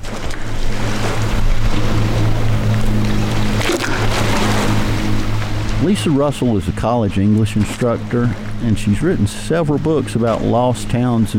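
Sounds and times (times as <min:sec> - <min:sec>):
Notley River rushing against the rocky edge of Notley Dam: 0:00.0 - 0:08.1
low constant hum: 0:00.0 - 0:11.3
speech: 0:05.9 - 0:11.3.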